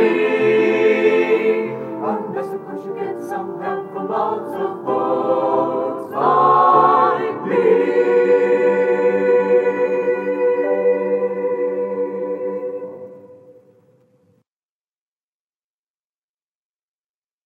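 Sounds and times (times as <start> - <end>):
Christmas chorale singing: 0.0 - 14.0.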